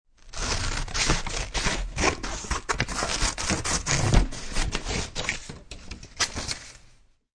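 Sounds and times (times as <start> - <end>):
scissors cutting thick paper: 0.2 - 6.8.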